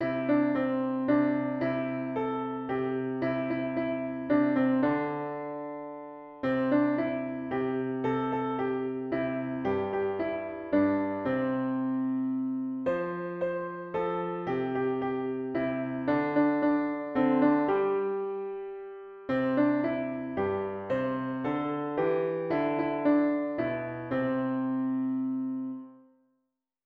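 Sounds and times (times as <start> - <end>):
piano: 0.0 - 26.2.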